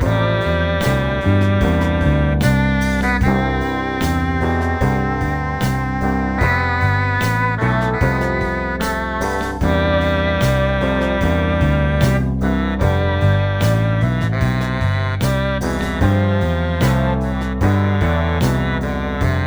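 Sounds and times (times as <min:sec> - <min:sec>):
midi melody: 0:00.0 - 0:19.4.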